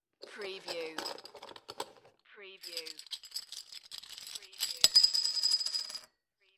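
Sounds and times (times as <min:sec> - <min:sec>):
beer bottle tops: 0:00.3 - 0:05.1.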